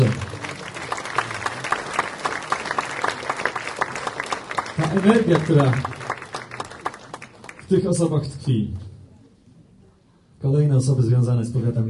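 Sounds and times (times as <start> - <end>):
audience applause at a medal award ceremony: 0.0 - 8.1
speech: 5.0 - 5.9, 7.7 - 8.8, 10.4 - 11.8.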